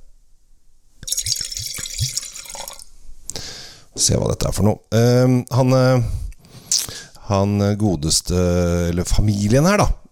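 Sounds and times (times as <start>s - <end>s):
glass clinking: 1.0s - 2.8s
wine pouring into a glass: 1.0s - 2.9s
speech: 4.0s - 10.0s.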